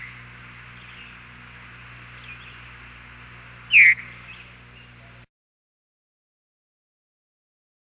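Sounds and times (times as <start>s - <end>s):
veery singing: 0.0s - 5.2s.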